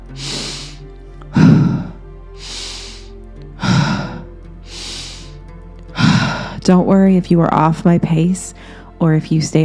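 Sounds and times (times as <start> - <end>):
slow steady paced breathing: 0.0 - 6.7, 8.6 - 9.0
speech: 6.6 - 9.6.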